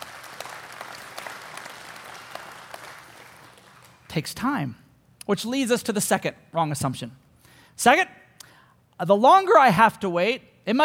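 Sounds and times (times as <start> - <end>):
audience applause: 0.0 - 4.1
speech: 4.1 - 7.2, 7.8 - 8.2, 9.0 - 10.8.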